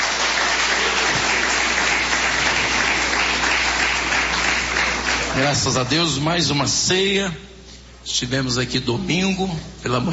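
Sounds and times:
applause: 0.0s - 5.8s
speech: 5.4s - 7.5s, 8.1s - 10.1s.

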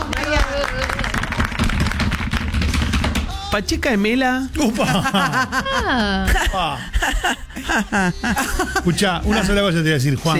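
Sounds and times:
crowd applause: 0.0s - 2.8s
speech: 3.6s - 10.3s
laughter: 4.6s - 9.6s.

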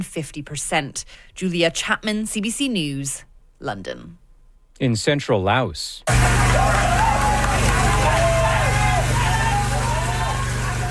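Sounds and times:
speech: 0.0s - 4.2s, 4.8s - 7.2s
rescue workers cheering: 6.1s - 10.8s.

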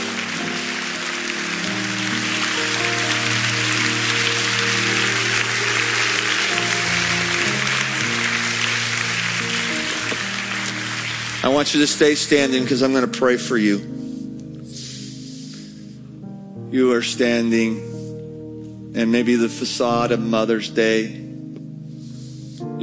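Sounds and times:
audience applause: 0.0s - 12.7s
speech: 11.6s - 14.0s, 16.8s - 17.9s, 19.0s - 21.2s.

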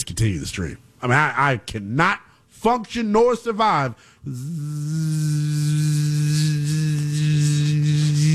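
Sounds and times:
speech: 0.2s - 6.7s
gnat buzzing around the room: 4.3s - 8.3s.

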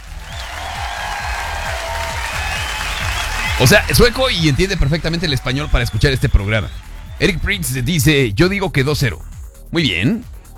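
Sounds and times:
crowd applause: 0.0s - 7.6s
speech: 3.6s - 10.3s.

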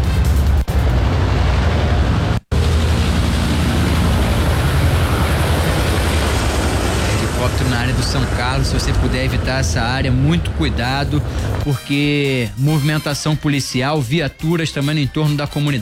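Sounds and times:
helicopter flying low overhead: 0.0s - 11.7s
speech: 8.6s - 15.8s.

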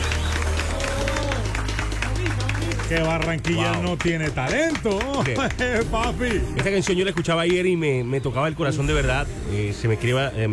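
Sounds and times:
audience applause: 0.0s - 7.6s
speech: 2.9s - 10.5s.

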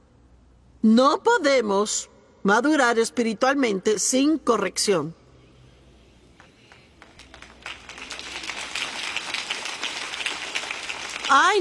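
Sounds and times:
speech: 0.8s - 5.2s
weak applause from audience: 6.4s - 11.6s.

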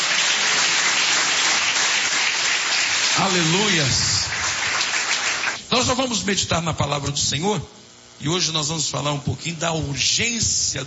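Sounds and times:
audience clapping hands: 0.0s - 5.6s
speech: 3.2s - 4.2s, 5.7s - 10.8s.

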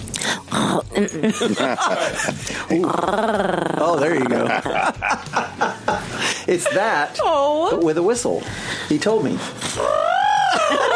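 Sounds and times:
speech: 0.7s - 10.9s
laughter: 1.2s - 2.6s, 4.1s - 7.2s, 10.4s - 10.9s
person imitating a cat purring: 2.8s - 4.0s.

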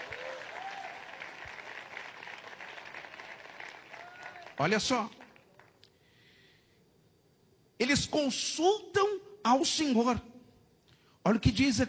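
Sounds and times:
audience applause: 0.0s - 5.7s
speech: 4.6s - 5.2s, 7.8s - 10.3s, 11.2s - 11.8s.

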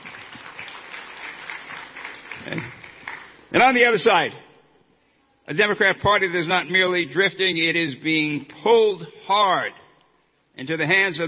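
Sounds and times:
audience applause: 0.0s - 3.5s
speech: 2.4s - 2.8s, 3.5s - 4.4s, 5.5s - 9.8s, 10.6s - 11.2s.

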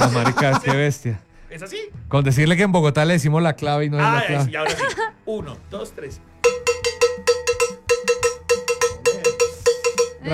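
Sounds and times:
laughter: 0.0s - 0.9s, 4.5s - 5.2s
speech: 0.0s - 6.3s
cowbell being played: 6.4s - 10.3s.

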